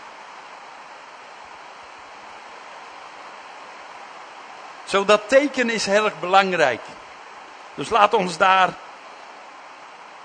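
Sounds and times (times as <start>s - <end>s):
rain falling: 0.0s - 10.2s
speech: 4.9s - 7.0s, 7.8s - 8.8s.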